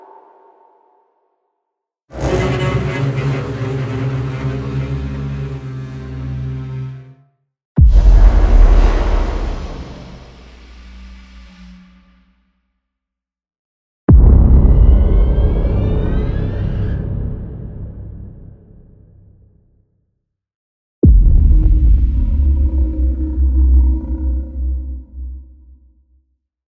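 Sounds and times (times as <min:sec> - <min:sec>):
paranormal horror music: 0:02.1 - 0:07.2, 0:07.8 - 0:12.1, 0:14.1 - 0:19.1, 0:21.1 - 0:25.6.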